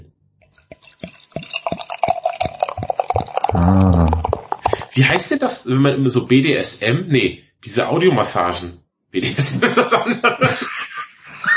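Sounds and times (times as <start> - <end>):
drink being poured into a glass from a bottle: 0.6 - 5.3
speech: 5.0 - 10.9
laughter: 9.2 - 11.5.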